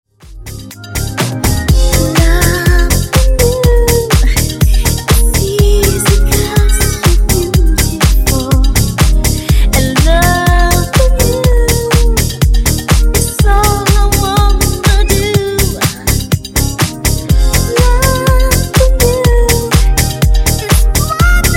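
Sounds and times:
disco funk remix: 0:00.1 - 0:21.5.

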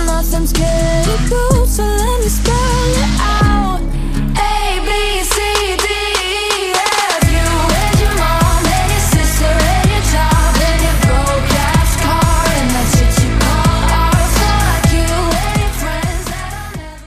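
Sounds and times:
breakbeat: 0:00.0 - 0:03.8, 0:04.7 - 0:17.0.

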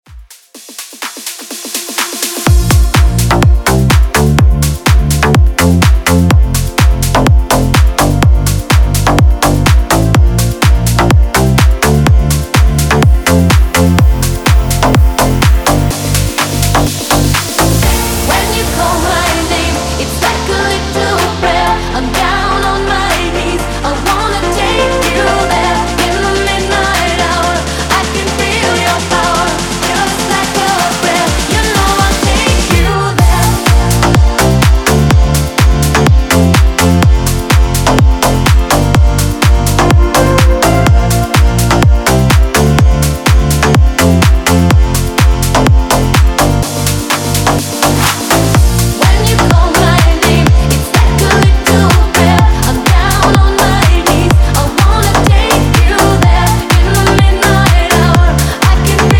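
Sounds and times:
future house music breaker at 125 bpm: 0:00.0 - 0:59.1.

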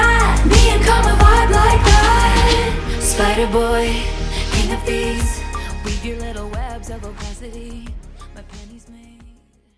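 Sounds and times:
Top40 DJ mixshow intro: 0:00.2 - 0:06.1.

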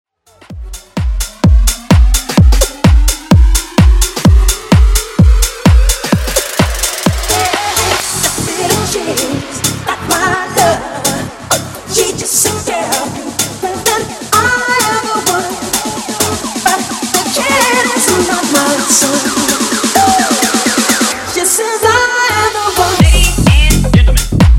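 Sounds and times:
bass house music: 0:00.2 - 0:24.5.

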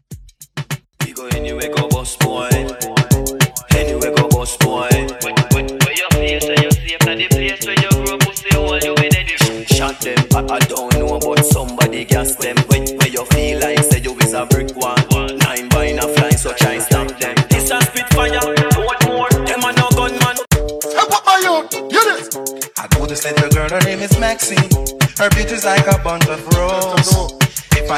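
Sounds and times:
dancehall party break at 100 BPM: 0:00.0 - 0:27.9.

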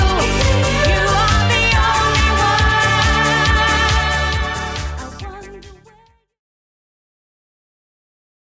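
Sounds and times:
80s style track at 138 BPM: 0:00.0 - 0:06.0.

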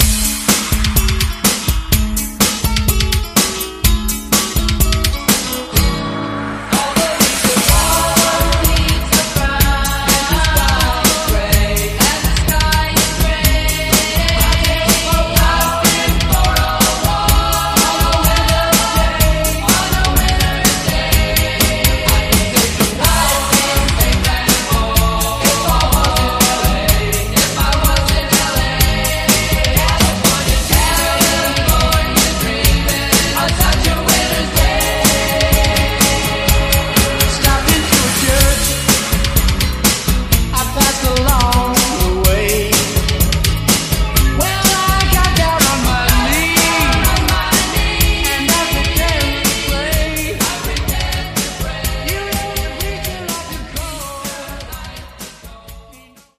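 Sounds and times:
Redrum drum machine beat: 0:00.0 - 0:06.0, 0:06.8 - 0:56.3.

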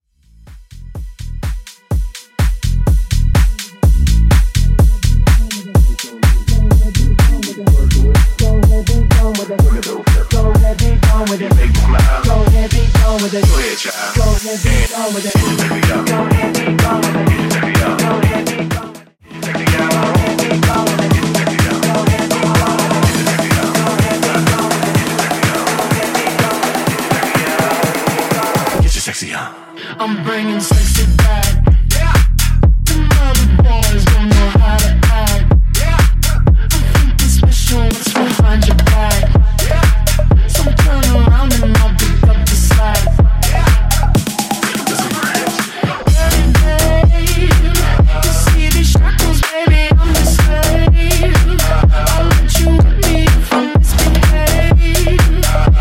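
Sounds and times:
bass mix at 125 BPM: 0:00.0 - 0:29.2, 0:30.7 - 0:55.7.

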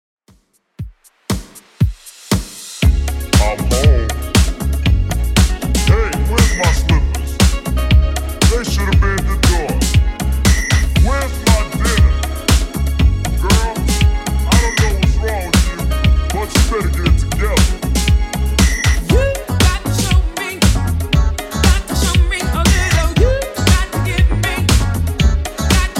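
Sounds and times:
80s style music at 118 bpm: 0:00.8 - 0:25.9.

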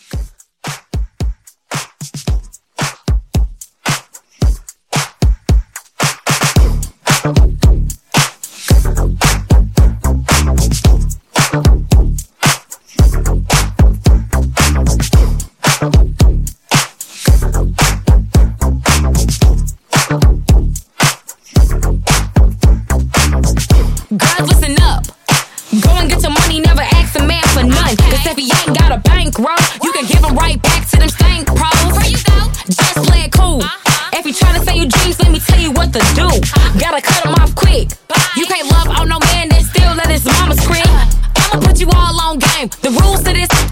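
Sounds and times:
club edit music: 0:00.0 - 0:43.7.

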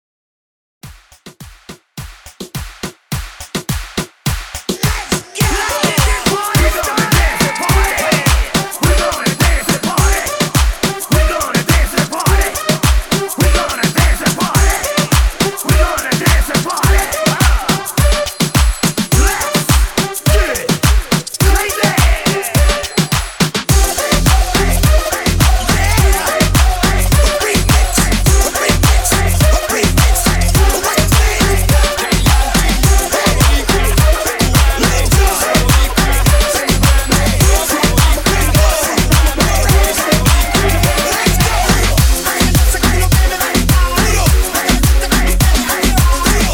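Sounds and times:
Moombah party break beat at 105 BPM: 0:00.8 - 0:46.5.

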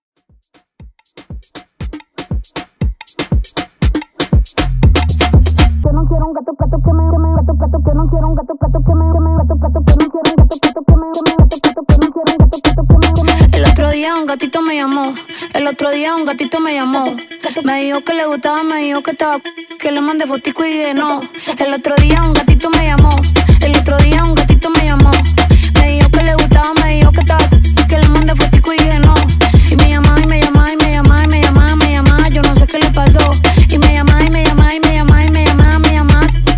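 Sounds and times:
moombahton music: 0:00.2 - 0:36.5.

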